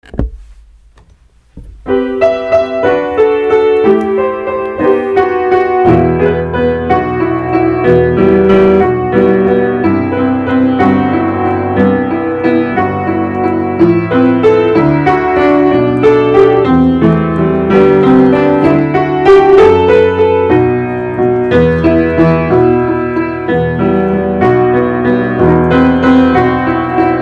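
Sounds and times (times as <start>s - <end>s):
piano: 0.0s - 27.2s.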